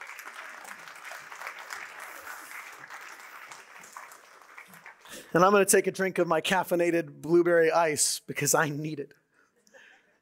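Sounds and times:
audience applauding guests coming on stage: 0:00.0 - 0:05.6
speech: 0:05.3 - 0:09.2.

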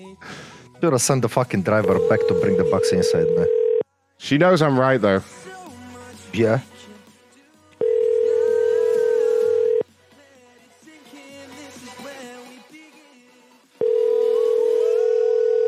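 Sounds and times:
speech: 0:00.0 - 0:03.6, 0:04.2 - 0:05.4, 0:06.3 - 0:06.8
telephone dial tone after a call drops: 0:01.8 - 0:03.8, 0:07.8 - 0:09.8, 0:13.8 - 0:15.6.

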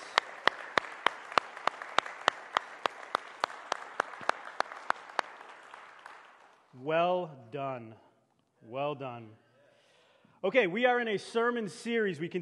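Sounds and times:
audience applause: 0:00.0 - 0:06.7
speech: 0:06.8 - 0:08.0, 0:08.6 - 0:09.4, 0:10.4 - 0:12.4.

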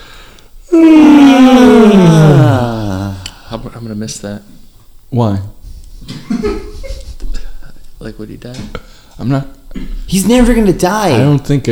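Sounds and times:
speech: 0:00.7 - 0:01.1, 0:03.8 - 0:04.5, 0:05.1 - 0:06.4, 0:08.1 - 0:11.6
several people yawning at once: 0:00.7 - 0:03.6.

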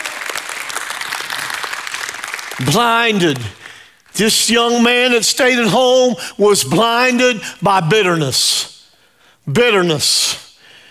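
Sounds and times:
audience clapping: 0:00.0 - 0:04.1
speech: 0:02.6 - 0:03.6, 0:04.2 - 0:08.7, 0:09.5 - 0:10.4.

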